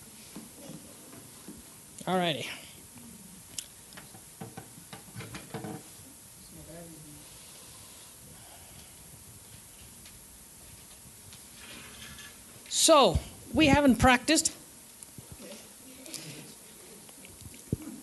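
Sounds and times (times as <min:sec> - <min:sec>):
steady hiss: 0:00.0 - 0:18.0
speech: 0:02.1 - 0:02.6, 0:12.9 - 0:14.6
chair being pulled out: 0:11.5 - 0:12.4.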